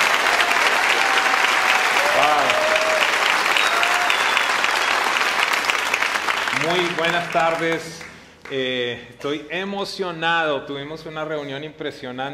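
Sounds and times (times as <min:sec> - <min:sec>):
crowd applause: 0:00.0 - 0:08.3
cheers or whistles: 0:00.3 - 0:05.5
speech: 0:02.2 - 0:02.6, 0:06.6 - 0:12.3.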